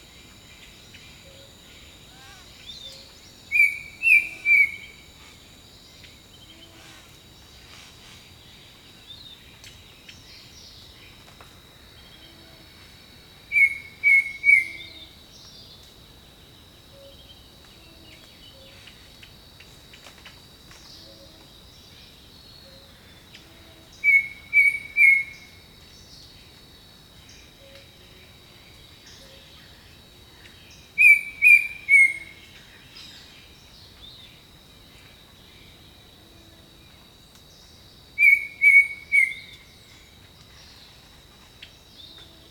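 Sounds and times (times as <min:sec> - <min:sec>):
insect drone: 0:00.0 - 0:42.4
bird whistling: 0:03.5 - 0:04.9, 0:13.5 - 0:14.8, 0:24.0 - 0:25.3, 0:31.0 - 0:32.3, 0:38.2 - 0:39.5.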